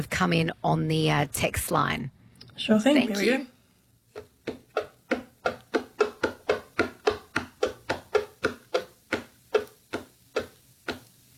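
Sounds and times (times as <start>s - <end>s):
speech: 0.0s - 3.5s
tapping on a hollow box: 4.2s - 11.1s.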